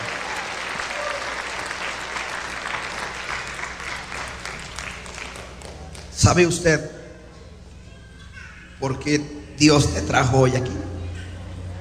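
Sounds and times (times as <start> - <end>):
crowd applauding: 0.0 - 6.5
speech: 6.2 - 7.0, 8.8 - 10.8.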